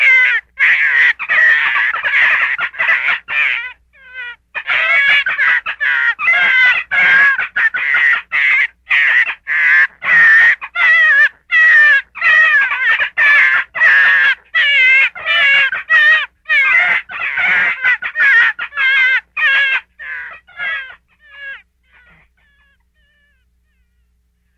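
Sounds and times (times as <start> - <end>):
gray fox yelping: 0.0 - 24.1.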